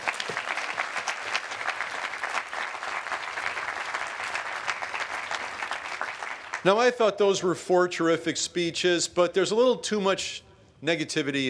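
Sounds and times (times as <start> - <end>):
audience applause: 0.0 - 6.7
speech: 6.6 - 11.4.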